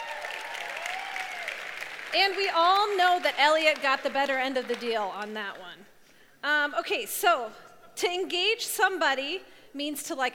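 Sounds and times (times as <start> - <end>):
audience applause: 0.0 - 4.9
speech: 2.1 - 10.3.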